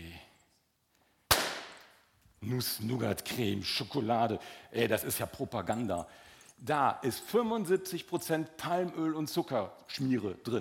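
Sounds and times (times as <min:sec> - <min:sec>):
balloon popping: 0:01.3 - 0:01.9
speech: 0:02.5 - 0:10.6.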